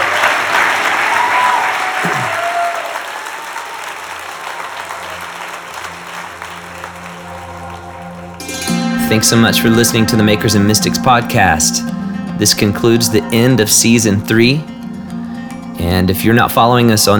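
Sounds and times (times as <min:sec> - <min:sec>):
audience applause: 0:00.0 - 0:10.2
speech: 0:09.1 - 0:14.7, 0:15.9 - 0:17.1.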